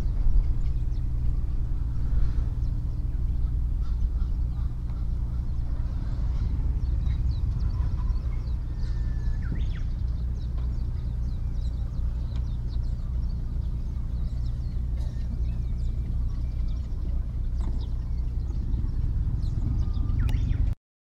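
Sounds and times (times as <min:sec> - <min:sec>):
fishing port ambience: 0:00.0 - 0:20.8.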